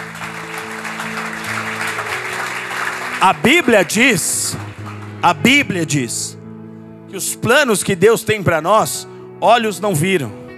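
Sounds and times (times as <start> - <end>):
audience applause: 0.0 - 5.3
speech: 3.2 - 4.6, 5.2 - 6.4, 7.1 - 10.4.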